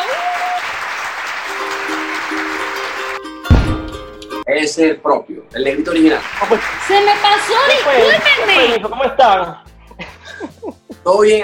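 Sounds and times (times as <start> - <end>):
applause: 0.0 - 3.3, 5.6 - 8.8
speech: 4.6 - 9.7, 11.0 - 11.4.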